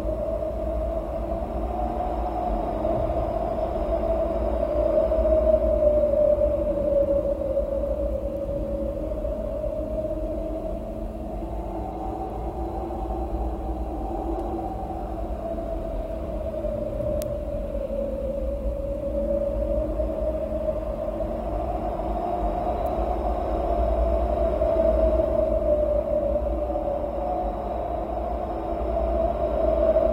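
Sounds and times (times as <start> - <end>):
wind howling: 0.0 - 30.1
faint ticks: 14.3 - 14.6, 17.1 - 17.4.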